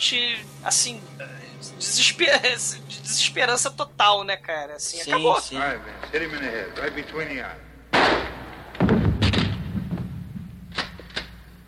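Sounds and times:
speech: 0:00.0 - 0:07.7
laughter: 0:01.8 - 0:03.3, 0:05.0 - 0:06.5
loud gunshot: 0:07.9 - 0:10.5.

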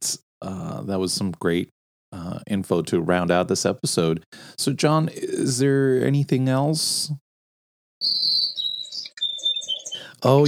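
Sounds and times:
speech: 0:00.4 - 0:07.2, 0:10.2 - 0:10.4
birds singing in high-pitched warbling whistles: 0:08.0 - 0:10.4.

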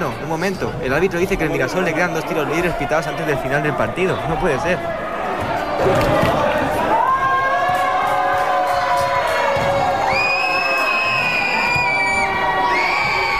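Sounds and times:
speech: 0:00.0 - 0:05.1, 0:05.8 - 0:06.4
crowd booing a basketball player: 0:04.9 - 0:13.3.

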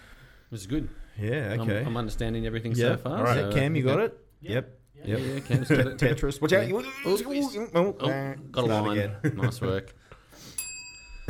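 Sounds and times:
speech: 0:00.5 - 0:10.6
laughter: 0:05.1 - 0:07.7, 0:08.7 - 0:10.1
bright bell ding: 0:10.6 - 0:11.2.

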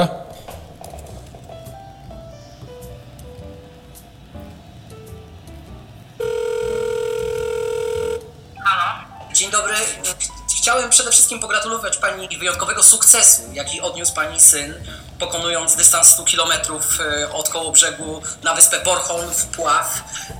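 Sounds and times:
soft stepping melody: 0:00.3 - 0:20.3
telephone ringing on a call: 0:06.2 - 0:10.2
speech: 0:09.4 - 0:20.3.

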